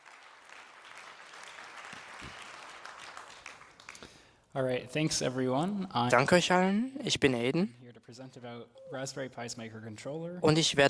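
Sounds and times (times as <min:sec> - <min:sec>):
audience applause: 0:00.0 - 0:04.4
speech: 0:04.6 - 0:10.8.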